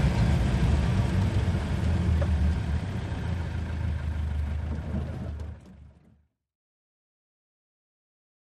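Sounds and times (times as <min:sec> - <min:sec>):
army jeep interior driving at medium speed: 0:00.0 - 0:06.1.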